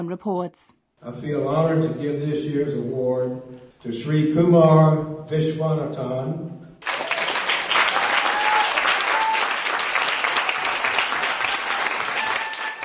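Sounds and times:
speech: 0:00.0 - 0:06.6
crowd clapping and cheering: 0:06.8 - 0:12.8.

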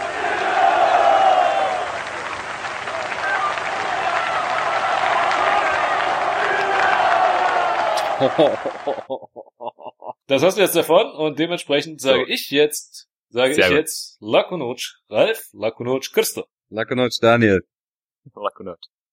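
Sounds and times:
crowd applause at political rally: 0:00.0 - 0:09.1
laughter: 0:07.9 - 0:10.8, 0:13.5 - 0:13.8
speech: 0:08.2 - 0:09.5, 0:10.3 - 0:19.0.

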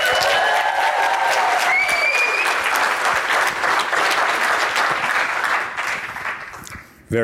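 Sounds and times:
live audience whooping: 0:00.0 - 0:03.1
live audience applauding at the National APCO Conference in Baltimore, Maryland: 0:00.0 - 0:06.9.

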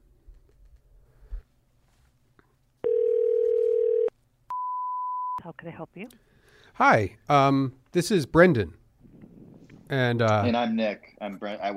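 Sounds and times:
faint clicks and rustling: 0:00.2 - 0:02.8
telephone dial tone: 0:02.8 - 0:04.1
speech: 0:05.5 - 0:08.8, 0:09.9 - 0:11.7.

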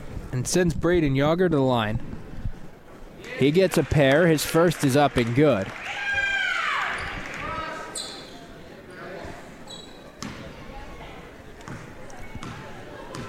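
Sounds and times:
speech: 0:00.3 - 0:02.1, 0:03.4 - 0:05.8
commentator talking: 0:03.3 - 0:05.7
basketball dribbled before a free throw in a high school game: 0:11.7 - 0:13.2.

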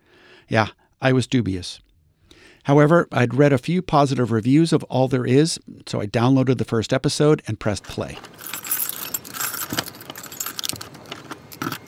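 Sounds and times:
speech: 0:00.5 - 0:01.9, 0:02.6 - 0:08.6
keys jingling in a heavy apartment door's locks: 0:08.2 - 0:11.8.

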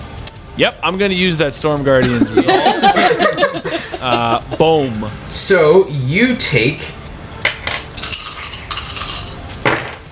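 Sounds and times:
speech: 0:00.6 - 0:07.0
laughter: 0:02.0 - 0:05.1
dice rolling on a hard tabletop: 0:07.5 - 0:10.0.

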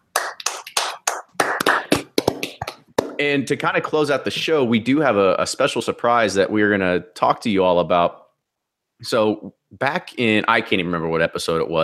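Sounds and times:
hands clapping: 0:00.0 - 0:03.3
speech: 0:03.2 - 0:08.2, 0:09.0 - 0:11.8.

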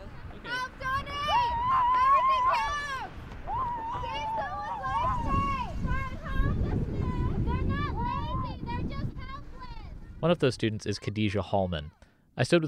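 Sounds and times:
low rumbling traffic: 0:00.0 - 0:10.6
wind rushing: 0:00.0 - 0:10.8
young voices screaming and yelling: 0:01.0 - 0:05.8
speech: 0:10.2 - 0:12.6.

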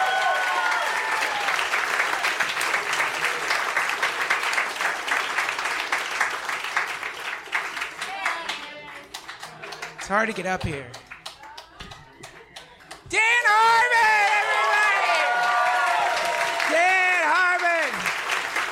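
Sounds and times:
audience whooping: 0:00.0 - 0:02.3, 0:13.1 - 0:18.1
audience applause: 0:00.0 - 0:11.4, 0:12.0 - 0:18.7
speech: 0:10.1 - 0:11.0, 0:13.1 - 0:14.0.

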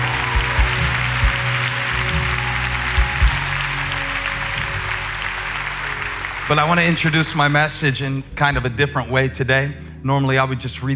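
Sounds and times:
crowd clapping: 0:00.0 - 0:08.1
speech: 0:06.5 - 0:10.9.

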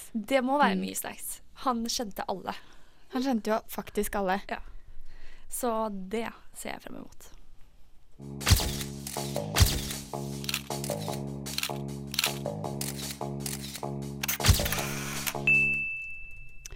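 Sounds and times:
speech: 0:00.1 - 0:04.7, 0:05.5 - 0:07.3, 0:08.2 - 0:09.5
steady tonal musical bed: 0:08.2 - 0:14.2
paparazzi camera shutter clicks: 0:08.4 - 0:15.4.

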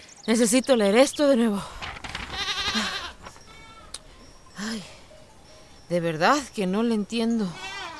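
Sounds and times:
speech: 0:00.3 - 0:01.7, 0:05.9 - 0:07.6
goat bleating: 0:02.3 - 0:03.9, 0:07.5 - 0:07.9.

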